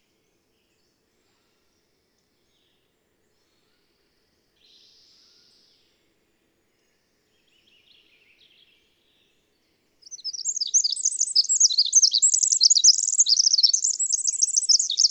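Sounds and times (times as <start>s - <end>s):
twittering bird song with short trills: 10.1s - 15.0s.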